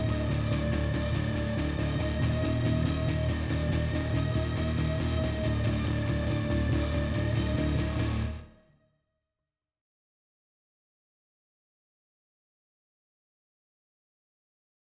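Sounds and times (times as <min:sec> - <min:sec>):
final boss combat music at 140 bpm in E flat minor: 0:00.0 - 0:08.4.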